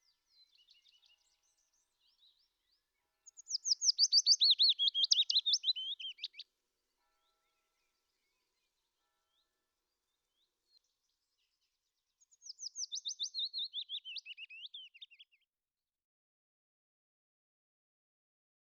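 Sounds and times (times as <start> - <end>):
Willow warbler singing: 0.0 - 6.4, 10.3 - 15.4.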